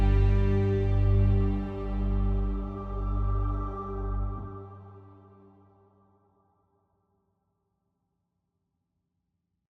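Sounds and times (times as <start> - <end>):
dark mysterious music with subtle rhythm: 0.0 - 5.8.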